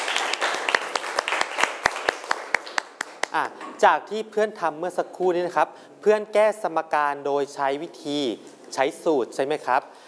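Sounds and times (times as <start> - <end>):
classroom clapping: 0.0 - 3.4
speech: 3.3 - 10.0.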